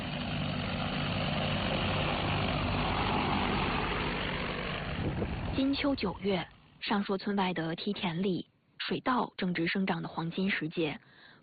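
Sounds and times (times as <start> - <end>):
agricultural crop-spraying drone flying: 0.0 - 6.8
speech: 5.6 - 11.4.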